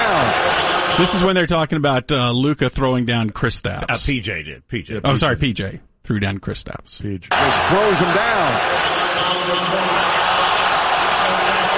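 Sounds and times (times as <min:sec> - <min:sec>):
large arena crowd roaring: 0:00.0 - 0:01.3, 0:07.3 - 0:11.7
speech: 0:01.0 - 0:10.2.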